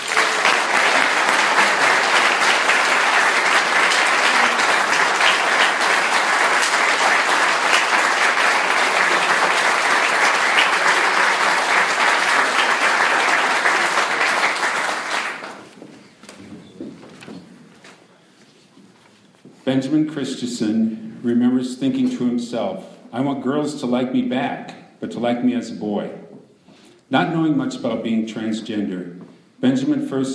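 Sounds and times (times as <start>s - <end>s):
audience applause: 0.0s - 15.8s
speech: 19.9s - 26.2s, 27.1s - 30.3s.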